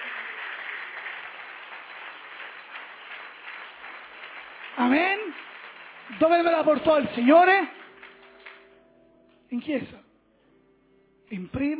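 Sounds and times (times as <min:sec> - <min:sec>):
audience applause: 0:00.0 - 0:08.8
speech: 0:04.8 - 0:05.5, 0:06.1 - 0:07.8, 0:09.5 - 0:10.0, 0:11.3 - 0:11.7.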